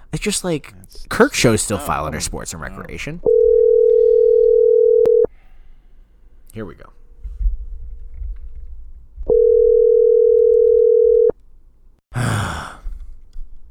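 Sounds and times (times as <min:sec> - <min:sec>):
speech: 0:00.1 - 0:03.4, 0:06.6 - 0:07.0
telephone line steady electronic tone: 0:03.2 - 0:05.3, 0:09.3 - 0:11.3
short breathy sigh: 0:12.1 - 0:13.2.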